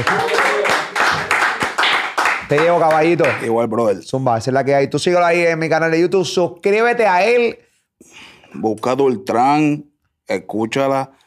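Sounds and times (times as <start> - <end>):
applause: 0.0 - 3.5
speech: 2.5 - 11.2.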